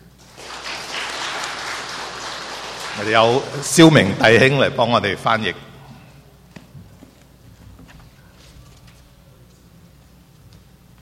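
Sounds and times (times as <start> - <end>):
warm applause welcoming a pastor: 0.2 - 4.8
speech: 3.0 - 5.7.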